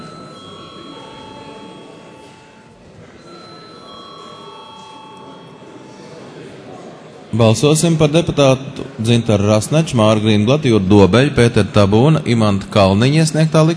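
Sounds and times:
parliament chamber bell ringing: 0.0 - 6.4
murmur of voices in the room: 0.0 - 13.7
speech: 7.3 - 13.7.

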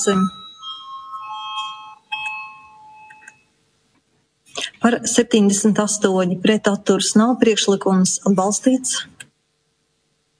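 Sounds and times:
speech: 0.0 - 0.4, 4.8 - 9.2
electronic bell signalling a vote in a parliament chamber: 0.0 - 3.6.

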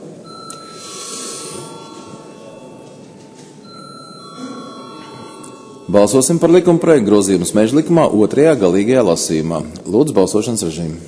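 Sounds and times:
parliament voting bell: 0.2 - 7.9
speech: 5.9 - 11.0.

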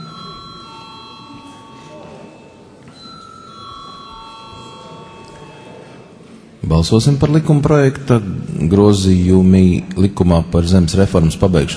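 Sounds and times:
chairman's bell ringing in the Latvian parliament before a vote: 0.0 - 6.2
low murmur in the parliament chamber: 0.0 - 11.7
speech: 6.7 - 11.7.

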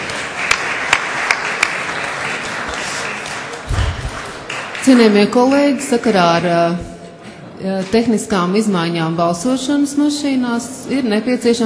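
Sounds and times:
applause in a parliament chamber: 0.0 - 5.9
speech: 4.8 - 6.9, 7.6 - 11.6.

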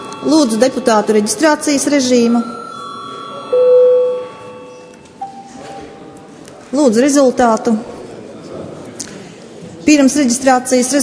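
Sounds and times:
parliament session bell ringing: 0.0 - 6.1
speech: 0.2 - 2.6, 6.7 - 8.0, 9.9 - 11.0.

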